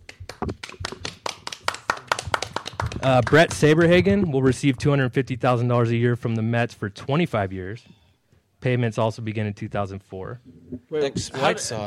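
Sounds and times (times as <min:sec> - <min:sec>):
speech: 0:00.4 - 0:00.8, 0:03.0 - 0:08.0, 0:08.6 - 0:11.8
audience applause: 0:00.7 - 0:03.5.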